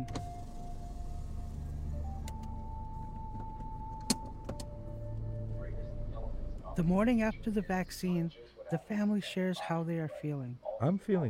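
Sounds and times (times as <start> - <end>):
car driving: 0.0 - 8.4
speech: 6.8 - 11.2.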